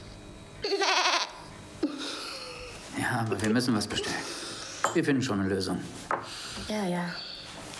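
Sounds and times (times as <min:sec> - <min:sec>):
goats bleating: 0:00.6 - 0:01.4
speech: 0:03.1 - 0:07.3.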